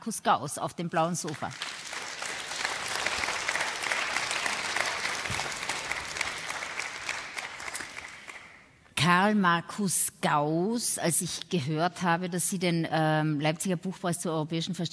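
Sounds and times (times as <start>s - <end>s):
speech: 0.0s - 1.8s, 9.1s - 14.9s
audience applause: 1.5s - 8.6s.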